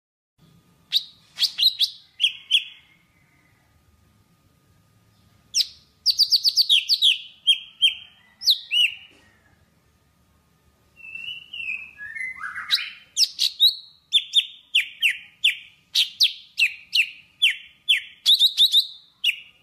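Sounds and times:
Java sparrow singing: 0.9s - 2.9s, 5.5s - 9.0s, 11.0s - 19.6s.

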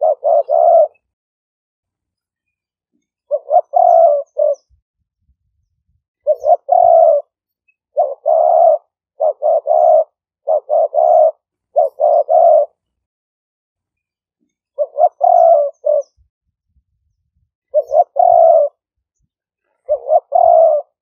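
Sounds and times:
Spotted dove cooing: 0.0s - 1.1s, 3.3s - 4.8s, 5.4s - 12.8s, 14.7s - 16.3s, 17.7s - 18.8s, 19.7s - 20.9s.

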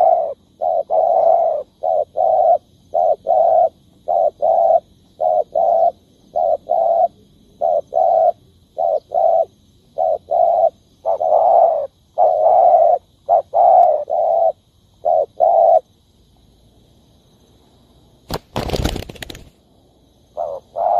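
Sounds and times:
spotted dove cooing: 0.0s - 15.8s, 20.4s - 20.9s
background hiss: 0.0s - 20.9s
sharp clattering rustle: 18.3s - 19.6s.

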